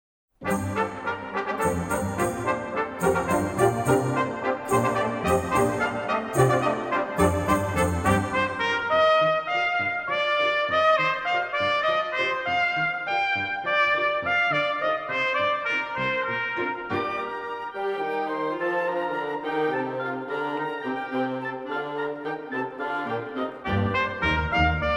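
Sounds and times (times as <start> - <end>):
trumpet concerto: 0.4 - 24.9.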